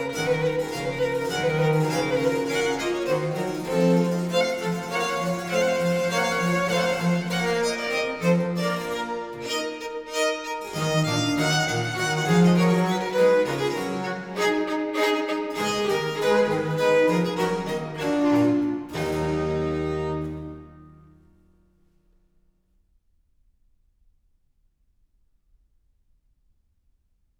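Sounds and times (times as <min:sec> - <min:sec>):
baroque trio sonata gavotte allegro in E minor: 0:00.0 - 0:21.4.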